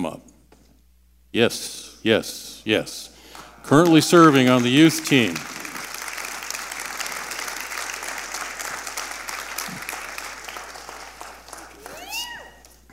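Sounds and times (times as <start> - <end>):
speech: 0.0 - 0.3, 1.3 - 5.6
crowd applause: 3.4 - 12.9
whistles and cheers: 11.8 - 12.6.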